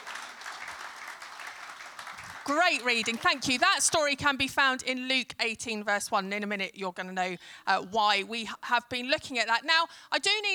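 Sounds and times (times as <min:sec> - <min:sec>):
crowd applauding: 0:00.0 - 0:04.2
speech: 0:02.5 - 0:10.5.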